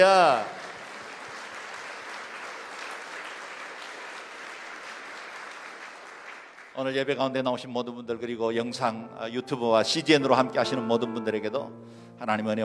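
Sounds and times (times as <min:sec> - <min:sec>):
speech: 0:00.0 - 0:00.6, 0:06.8 - 0:12.6
audience applause: 0:00.0 - 0:06.7.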